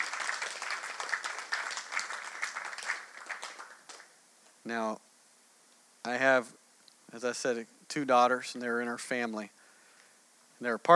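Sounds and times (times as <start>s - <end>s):
audience clapping: 0.0s - 4.6s
speech: 4.7s - 5.1s, 6.0s - 9.6s, 10.6s - 10.9s.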